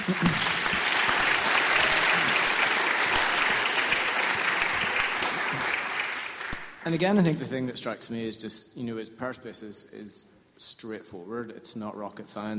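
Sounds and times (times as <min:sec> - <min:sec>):
audience applause: 0:00.0 - 0:06.8
speech: 0:06.9 - 0:12.5.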